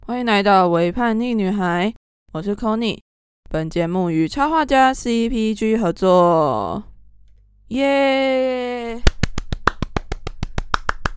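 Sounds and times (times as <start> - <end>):
speech: 0.1 - 6.9, 7.7 - 9.1
steady brisk hand clapping: 9.0 - 11.1.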